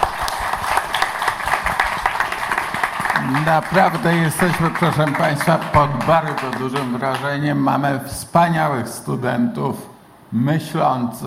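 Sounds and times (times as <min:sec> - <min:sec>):
audience applause: 0:00.0 - 0:07.4
speech: 0:03.3 - 0:11.2.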